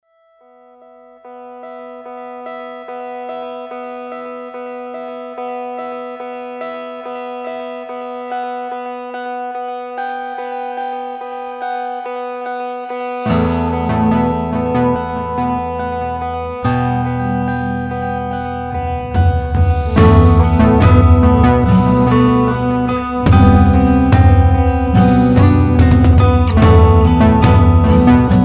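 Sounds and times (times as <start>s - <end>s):
instrumental music: 11.0s - 28.4s.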